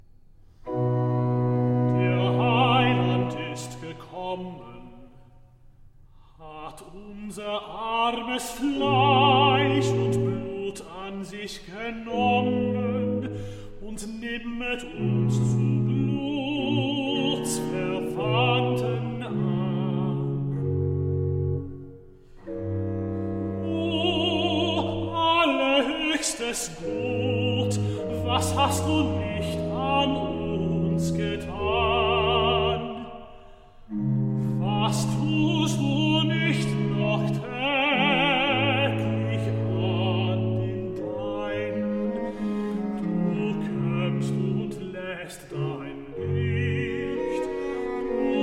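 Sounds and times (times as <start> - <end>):
cantata recitative singing: 0.7 - 5.1, 6.4 - 21.3, 22.4 - 48.4.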